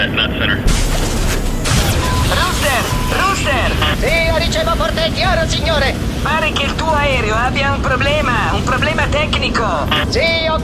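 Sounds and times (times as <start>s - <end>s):
missile launch sound effect: 0.6s - 6.6s
speech: 4.4s - 10.6s.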